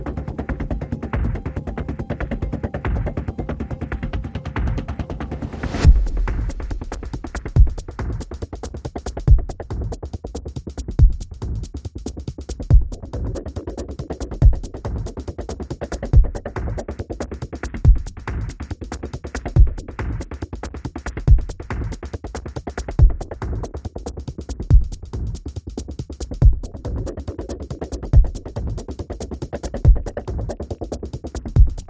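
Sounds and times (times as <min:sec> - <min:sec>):
drum pulses: 0:04.0 - 0:17.0, 0:17.7 - 0:18.7, 0:19.4 - 0:20.3, 0:21.1 - 0:22.0, 0:22.8 - 0:31.8.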